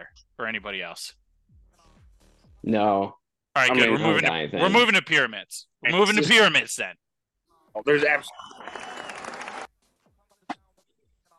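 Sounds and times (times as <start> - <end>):
speech: 0.1 - 1.2, 2.6 - 7.0, 7.7 - 8.9
clapping: 8.4 - 9.7.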